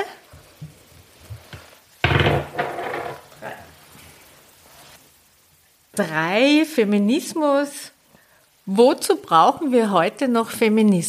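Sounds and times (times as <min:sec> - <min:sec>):
dice being rolled: 0:02.0 - 0:03.2
speech: 0:06.0 - 0:08.0, 0:08.7 - 0:11.0.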